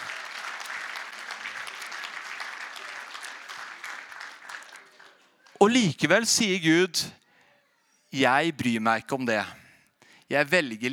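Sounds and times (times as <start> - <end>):
audience applause: 0.0 - 5.6
speech: 5.6 - 7.2, 8.1 - 9.6, 10.3 - 10.9.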